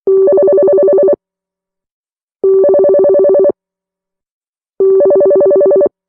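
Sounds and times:
old ringtone: 0:00.1 - 0:01.2, 0:02.4 - 0:03.6, 0:04.8 - 0:05.9.

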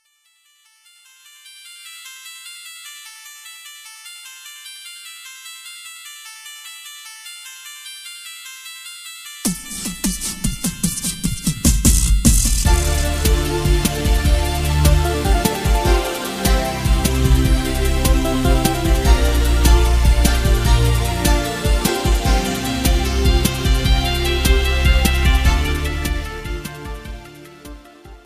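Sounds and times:
tune: 0:09.5 - 0:28.2.

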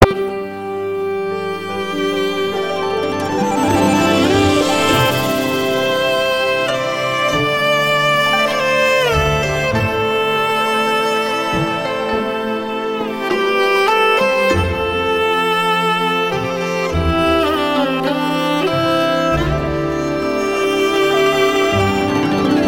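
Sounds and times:
soft violin: 0:00.0 - 0:22.6.

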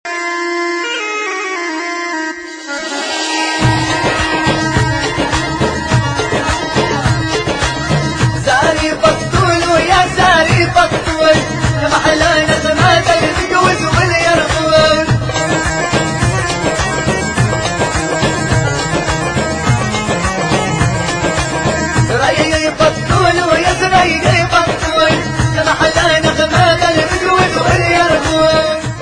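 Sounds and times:
debka music: 0:00.0 - 0:29.0.

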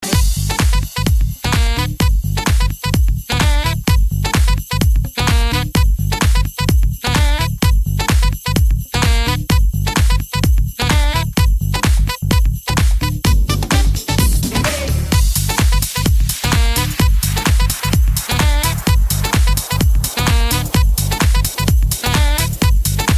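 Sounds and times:
Christmas song: 0:00.0 - 0:23.1.

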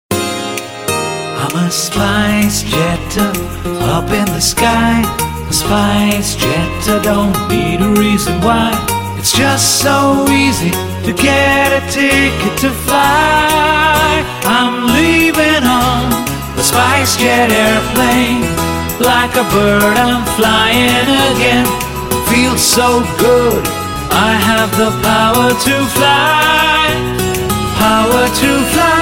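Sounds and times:
jingle: 0:00.1 - 0:29.0.

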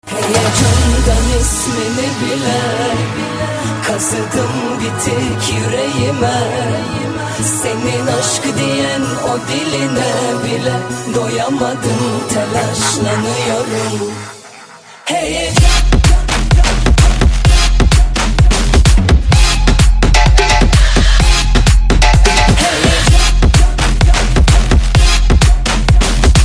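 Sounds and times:
remix music: 0:00.0 - 0:26.4.

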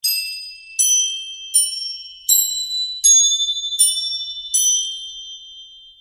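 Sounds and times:
bells in 3D: 0:00.0 - 0:05.9.

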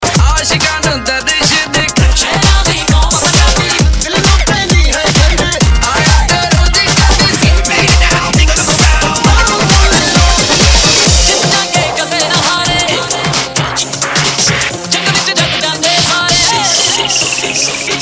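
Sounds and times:
bhangra DJ music: 0:00.0 - 0:18.0.

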